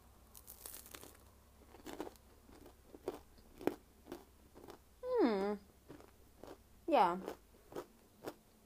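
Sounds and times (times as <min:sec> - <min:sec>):
crunchy biting and chewing of homemade cookies dusted with icing sugar: 0:00.3 - 0:04.8, 0:05.5 - 0:08.6
person humming: 0:05.0 - 0:05.6
speech: 0:06.9 - 0:07.4.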